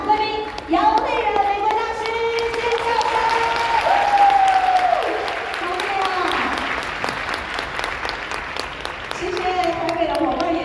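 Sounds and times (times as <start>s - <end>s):
large audience applauding: 0.0s - 10.5s.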